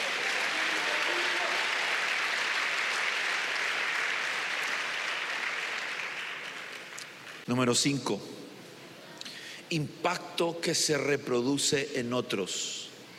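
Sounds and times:
audience clapping: 0.0 - 7.4
speech: 7.5 - 8.4, 9.7 - 12.8.

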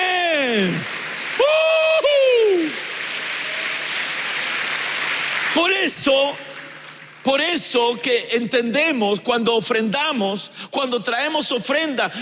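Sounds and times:
audience applauding: 0.0 - 7.8
speech: 0.6 - 1.0, 7.3 - 12.1
shouts and cheers: 1.4 - 3.9.

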